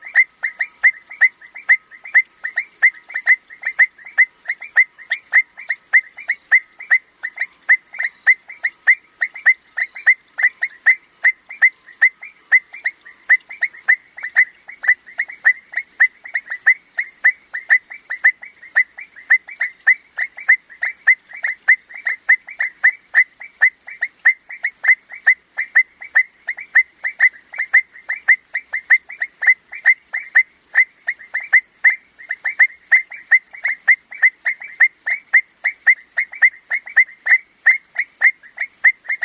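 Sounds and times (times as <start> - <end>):
faint high hiss: 0.0 - 39.2
frog clicking: 2.1 - 7.0.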